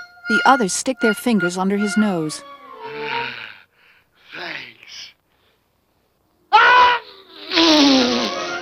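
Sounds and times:
speech: 0.4 - 2.5
sneeze: 6.6 - 8.4.

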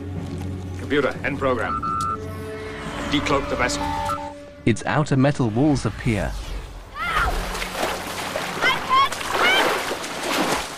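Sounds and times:
speech: 0.9 - 1.9, 3.1 - 4.1, 4.7 - 6.5
bodies diving into a lake: 7.1 - 10.7.

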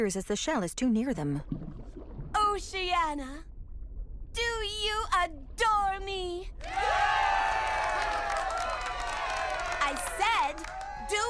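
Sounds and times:
speech: 0.0 - 1.6, 2.4 - 3.5, 4.4 - 7.2
audience cheering for a performer: 6.6 - 11.2.

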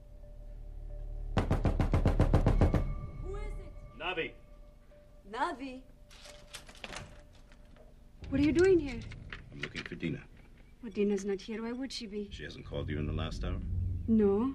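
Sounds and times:
impatient hammering on an apartment door: 1.4 - 3.0
speech: 4.0 - 4.4, 5.3 - 6.3, 8.3 - 14.5.

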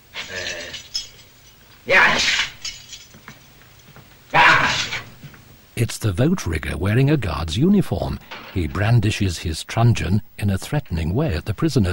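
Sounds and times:
bunch of keys jangling: 0.2 - 1.8, 2.4 - 3.9
speech: 5.8 - 11.9.

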